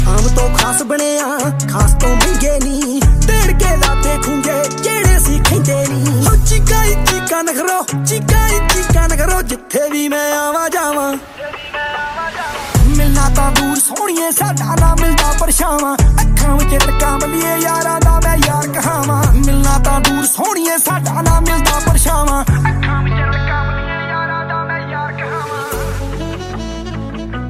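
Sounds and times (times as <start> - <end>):
Punjabi ringtone music: 0.0 - 24.3, 24.9 - 27.4.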